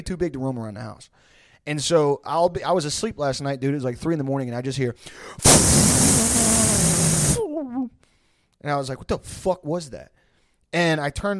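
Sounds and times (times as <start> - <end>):
speech: 0.0 - 8.0, 8.6 - 11.3
vocal imitation of dog urinating forcefully: 5.4 - 7.5.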